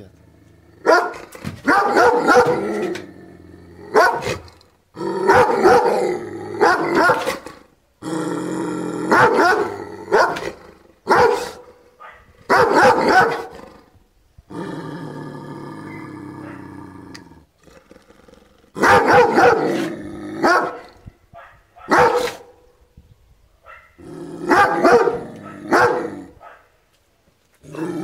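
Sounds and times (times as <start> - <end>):
dog barking: 0.8 - 2.6, 3.9 - 4.4, 5.3 - 6.0, 6.6 - 7.4, 9.1 - 13.5, 16.4 - 16.7, 18.8 - 22.7, 23.6 - 26.7.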